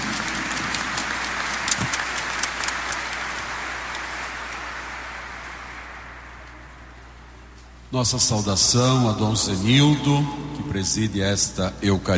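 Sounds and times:
crowd applause: 0:00.0 - 0:07.4
speech: 0:07.9 - 0:12.1.

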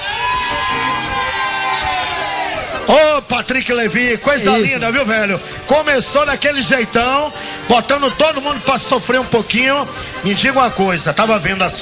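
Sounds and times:
live show audience shouting and cheering: 0:00.0 - 0:05.0
speech: 0:02.9 - 0:11.8.

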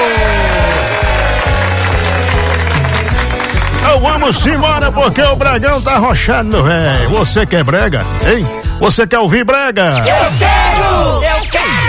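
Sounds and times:
audience applause: 0:00.0 - 0:04.5
speech: 0:04.3 - 0:11.8.

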